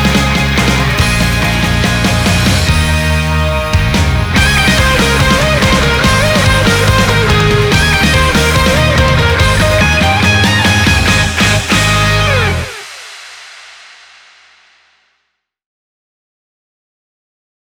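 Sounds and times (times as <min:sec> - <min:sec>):
anime-length instrumental music: 0:00.0 - 0:12.9.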